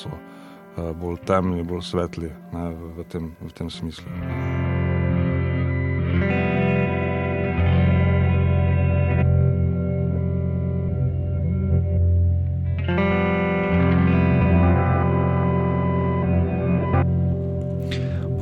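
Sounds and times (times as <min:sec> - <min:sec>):
speech: 0:00.0 - 0:04.4
heavily processed guitar drones through modular effects system: 0:00.0 - 0:18.3.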